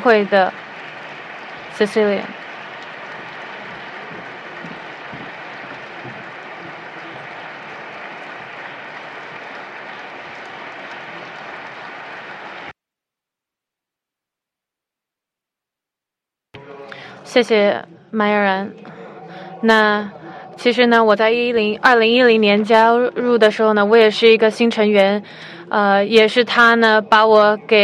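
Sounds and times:
speech: 0.0 - 0.6, 1.8 - 2.5, 17.3 - 19.0, 19.6 - 27.8
audience applause: 0.0 - 12.8, 18.8 - 27.8.

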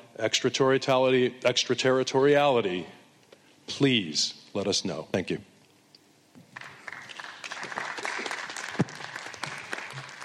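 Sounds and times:
speech: 0.2 - 3.0, 3.7 - 5.5
audience applause: 6.6 - 10.2.

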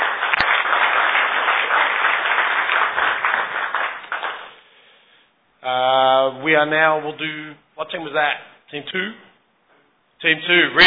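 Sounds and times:
audience applause: 0.0 - 4.6
speech: 6.5 - 9.3, 10.2 - 10.8.

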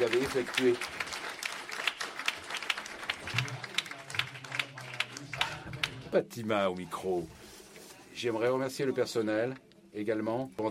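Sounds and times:
speech: 0.0 - 1.1, 6.1 - 7.4, 8.2 - 10.7
audience applause: 0.0 - 6.0.

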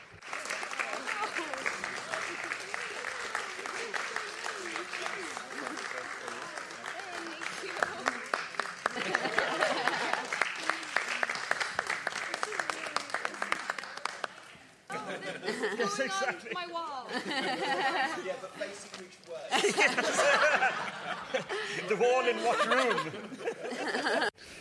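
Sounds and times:
audience applause: 0.0 - 16.2, 19.5 - 24.3
laughter: 0.4 - 14.2, 14.9 - 24.4.

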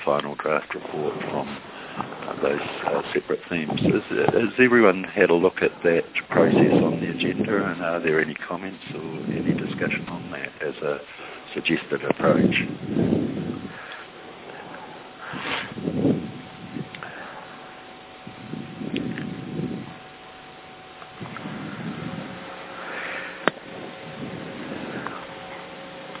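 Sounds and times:
faint background hum: 0.0 - 26.1
speech: 0.1 - 13.5
heavy breathing: 1.6 - 2.8, 11.0 - 11.5, 12.9 - 15.8, 16.9 - 17.7, 21.3 - 25.4.

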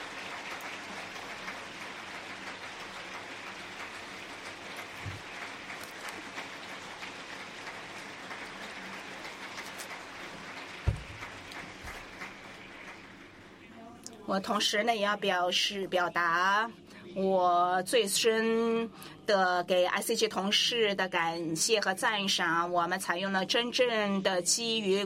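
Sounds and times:
audience applause: 0.0 - 13.6
speech: 14.3 - 25.0.

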